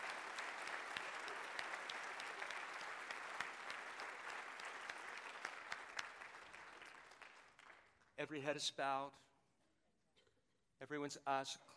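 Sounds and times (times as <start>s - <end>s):
audience clapping: 0.0s - 8.2s
speech: 8.2s - 9.3s, 10.8s - 11.7s.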